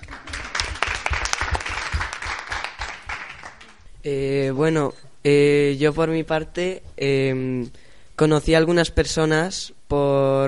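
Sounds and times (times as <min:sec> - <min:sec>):
audience clapping: 0:00.0 - 0:03.8
speech: 0:04.0 - 0:10.4.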